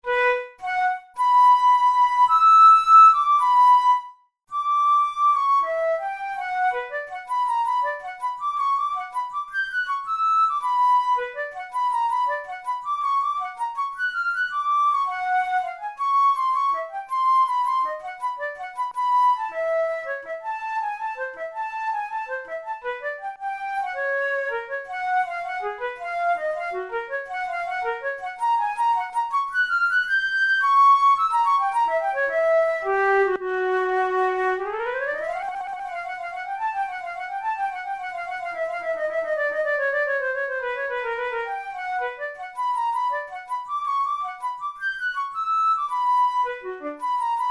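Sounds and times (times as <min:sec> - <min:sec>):
flute tunes playing melodic exercises: 0:00.0 - 0:47.4.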